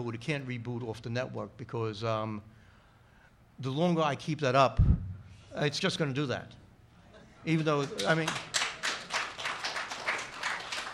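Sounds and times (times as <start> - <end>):
speech: 0.0 - 2.6, 3.6 - 5.0, 5.6 - 6.6, 7.4 - 8.6
faint audience applause: 7.8 - 10.9.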